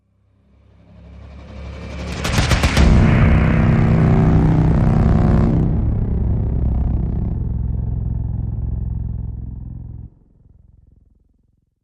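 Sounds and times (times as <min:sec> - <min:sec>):
hit stinger: 0:01.0 - 0:10.1.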